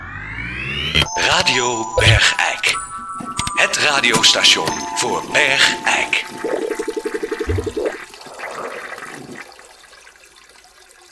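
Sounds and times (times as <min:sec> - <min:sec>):
speech: 0:01.0 - 0:02.9, 0:03.6 - 0:06.6
toilet flushing: 0:04.8 - 0:11.1.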